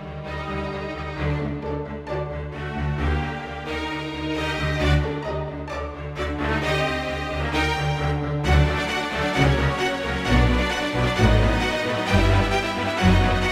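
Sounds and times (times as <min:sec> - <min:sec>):
classical orchestral tune on a synthesizer: 0:00.0 - 0:13.4.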